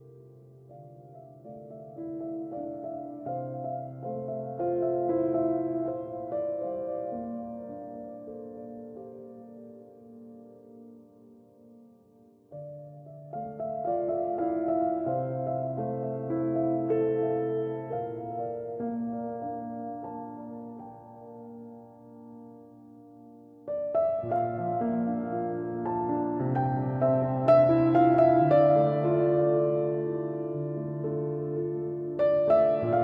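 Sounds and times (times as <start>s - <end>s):
piano layer: 0.0s - 33.0s.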